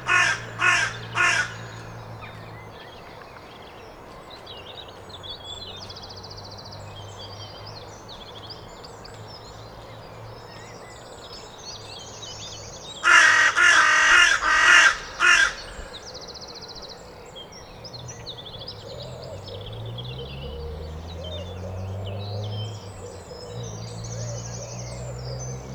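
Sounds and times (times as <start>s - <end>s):
carrion crow Corvus corone giving loud harsh even caws: 0.0s - 2.0s, 13.0s - 16.1s.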